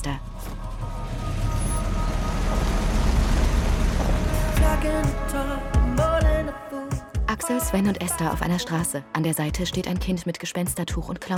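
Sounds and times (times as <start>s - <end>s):
car engine starting and driving off: 0.0s - 6.1s
speech: 6.4s - 11.3s.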